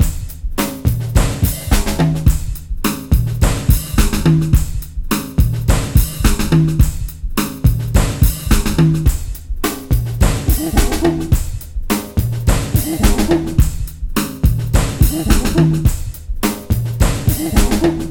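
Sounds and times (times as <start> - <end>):
funky breakbeat loop at 106 BPM: 0.0 - 18.0.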